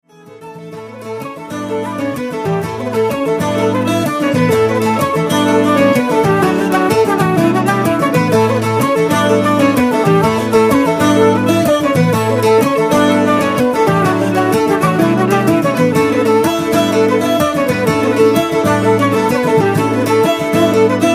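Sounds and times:
Irish band playing: 0:00.2 - 0:21.1.

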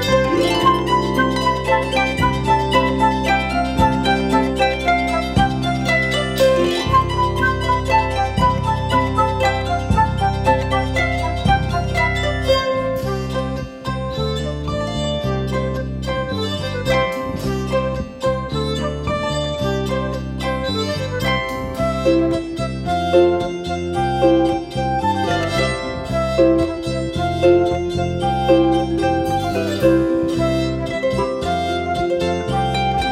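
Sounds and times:
Celtic group playing psaltery dance music: 0:00.0 - 0:33.1.

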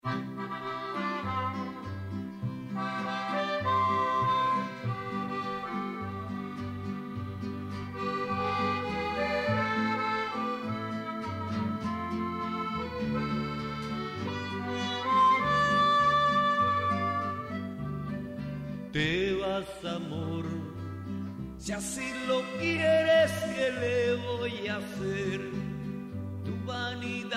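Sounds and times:
mariachi music: 0:00.0 - 0:27.3.

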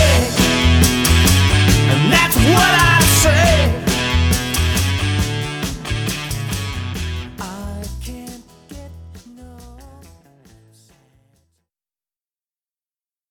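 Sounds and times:
classic rock band playing: 0:00.0 - 0:09.5.

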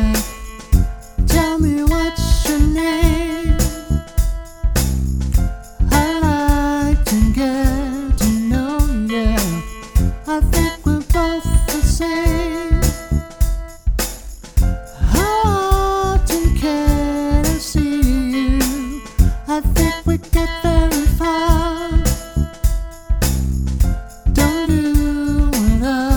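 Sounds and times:
R&B band playing: 0:00.0 - 0:26.1.

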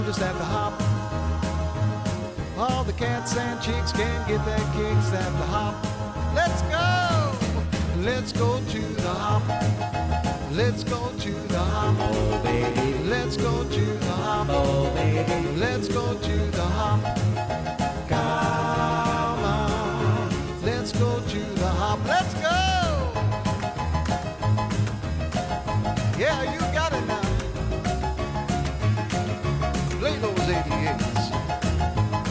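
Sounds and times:
50s 60s band playing: 0:00.0 - 0:32.2.

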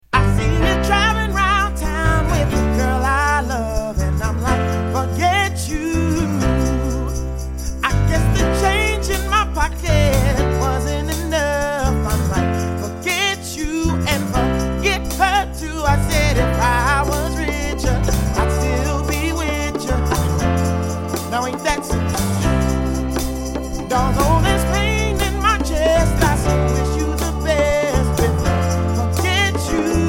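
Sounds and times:
pop band playing: 0:00.2 - 0:30.0.

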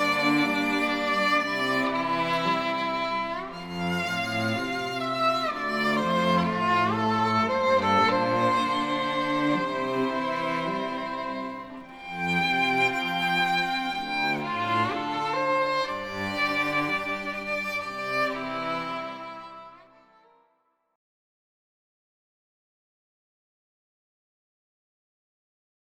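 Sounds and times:
string quartet playing: 0:00.0 - 0:20.2.

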